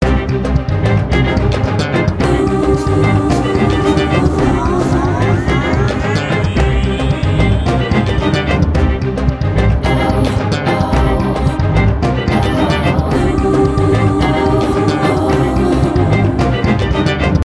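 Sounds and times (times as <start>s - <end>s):
Turkish electronic music: 1.0s - 17.4s.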